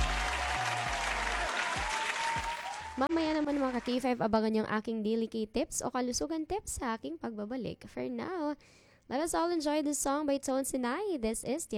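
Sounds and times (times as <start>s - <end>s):
faint applause for the listeners of a radio program: 0.0s - 4.0s
speech: 3.0s - 11.7s.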